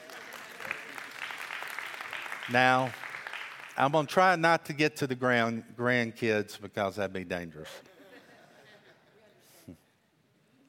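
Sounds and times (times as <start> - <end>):
audience clapping: 0.0 - 4.1
speech: 2.5 - 3.0, 3.8 - 7.9.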